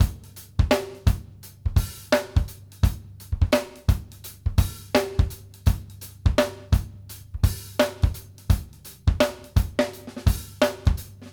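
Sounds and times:
go-go drum beat: 0.0s - 11.3s.

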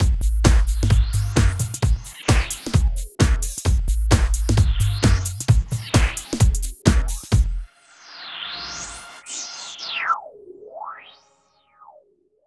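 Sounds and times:
music loop: 0.0s - 7.7s.

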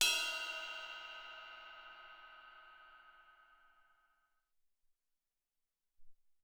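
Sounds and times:
Alesis SR-18 ride cymbal bell: 0.0s - 3.3s.

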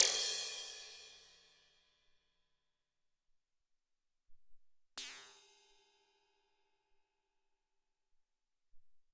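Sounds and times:
Alesis SR-18 drum machine crash cymbal: 0.0s - 0.7s.

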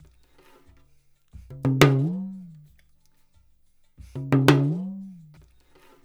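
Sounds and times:
percussion loop: 1.3s - 2.8s, 4.0s - 6.0s.

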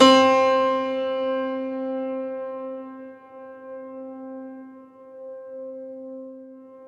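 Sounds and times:
Bösendorfer piano: 0.0s - 6.8s.

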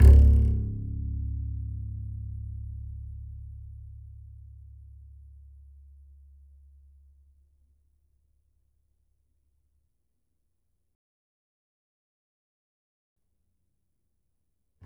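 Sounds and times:
E note on the E string of an upright bass: 0.0s - 7.2s.

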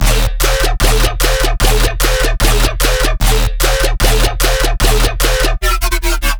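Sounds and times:
bass loop at 150 bpm in D sharp: 0.0s - 5.8s.

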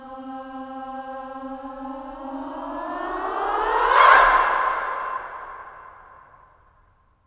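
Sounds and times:
female swooping sound: 2.8s - 6.4s.

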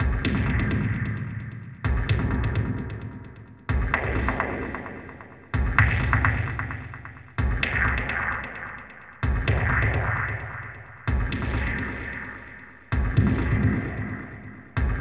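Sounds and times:
ambient bass drum: 0.0s - 14.9s.

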